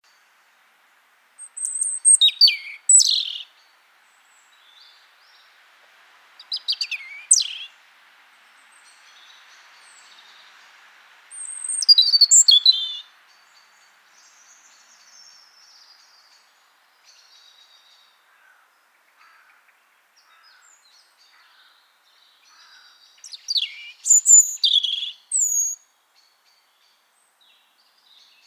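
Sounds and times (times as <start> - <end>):
background hiss: 0.0 - 28.4
European robin song: 1.4 - 3.5, 6.4 - 7.7, 11.3 - 16.4, 23.2 - 27.0.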